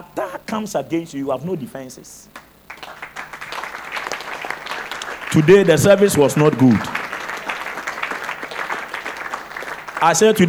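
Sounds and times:
speech: 0:00.2 - 0:02.4, 0:05.3 - 0:07.0, 0:10.0 - 0:10.4
audience clapping: 0:02.4 - 0:10.4.

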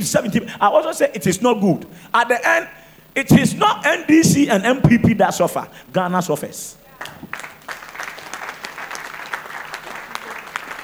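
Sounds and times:
speech: 0:00.0 - 0:07.4
audience clapping: 0:07.0 - 0:10.8.

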